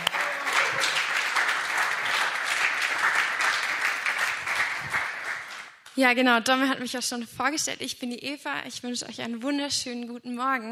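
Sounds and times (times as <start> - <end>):
audience applause: 0.0 - 5.8
speech: 6.0 - 10.6.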